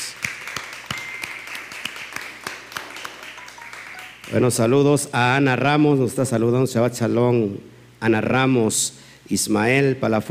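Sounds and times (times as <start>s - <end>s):
applause: 0.0s - 4.8s
speech: 4.3s - 10.3s.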